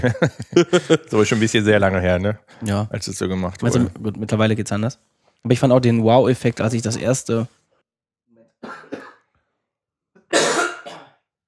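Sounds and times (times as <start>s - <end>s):
laughter: 0.0s - 1.6s
speech: 0.0s - 7.6s
throat clearing: 3.7s - 4.0s, 10.3s - 11.2s.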